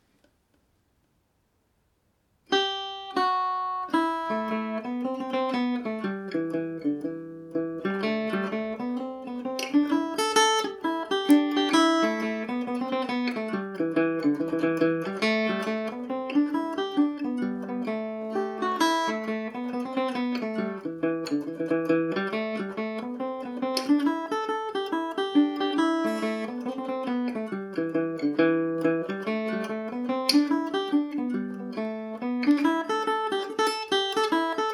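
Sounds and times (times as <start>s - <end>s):
Irish mandolin in A Dorian: 2.5s - 34.7s.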